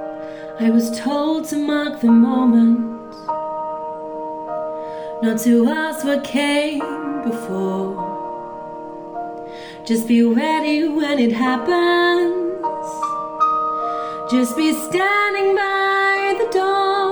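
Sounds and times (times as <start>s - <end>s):
vocals: 0.4s - 3.3s, 5.0s - 8.6s, 9.6s - 13.3s, 13.9s - 17.1s.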